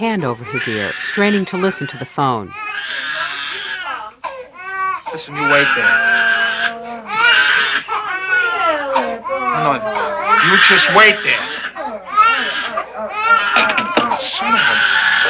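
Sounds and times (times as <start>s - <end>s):
speech: 0.0s - 3.2s, 5.1s - 6.6s, 9.6s - 11.6s
baby crying: 0.0s - 15.2s.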